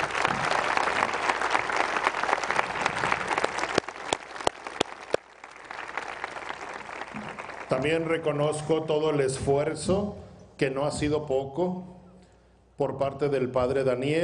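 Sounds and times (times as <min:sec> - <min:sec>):
audience applause: 0:00.0 - 0:08.1
speech: 0:07.7 - 0:12.0, 0:12.8 - 0:14.2.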